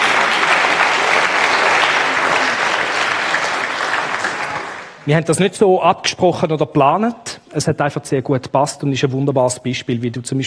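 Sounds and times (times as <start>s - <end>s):
audience clapping: 0.0s - 5.2s
speech: 5.0s - 10.4s.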